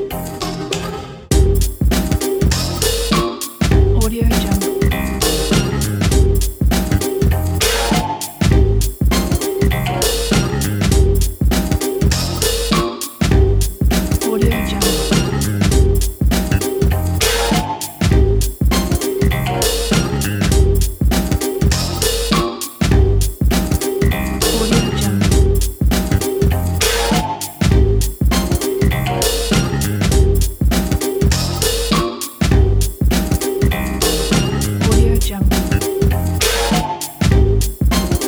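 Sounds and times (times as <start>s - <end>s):
glitch experimental music: 0.2s - 38.2s.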